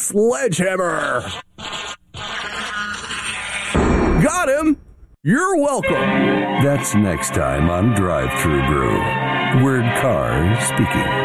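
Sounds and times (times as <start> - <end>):
speech: 0.1 - 1.5, 4.2 - 11.2
housefly buzzing: 1.3 - 3.8.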